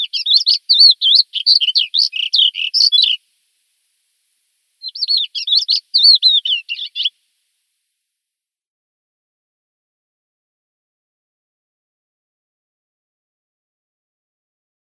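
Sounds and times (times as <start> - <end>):
Thekla lark singing: 0.0 - 3.2, 4.8 - 7.2.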